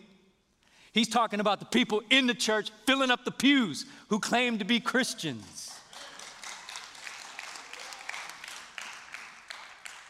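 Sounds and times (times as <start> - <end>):
speech: 1.0 - 5.6
audience clapping: 5.7 - 10.0.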